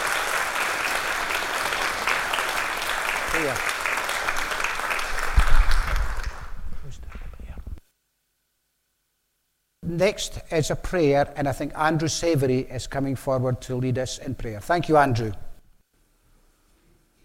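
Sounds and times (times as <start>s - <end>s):
audience applause: 0.0s - 7.2s
speech: 3.4s - 3.7s, 10.0s - 15.4s.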